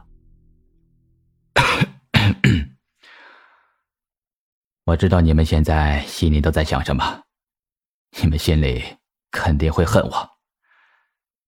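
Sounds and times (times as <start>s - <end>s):
man coughing: 1.6s - 2.7s
speech: 4.9s - 7.2s, 8.1s - 10.3s.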